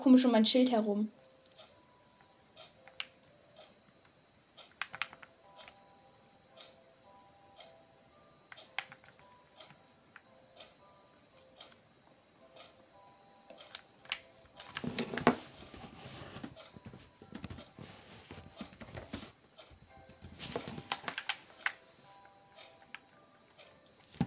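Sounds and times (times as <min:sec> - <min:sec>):
speech: 0:00.0 - 0:01.2
keyboard typing while rewriting a sign in Minecraft: 0:01.4 - 0:03.3, 0:04.6 - 0:05.8, 0:08.5 - 0:10.2, 0:13.6 - 0:21.8.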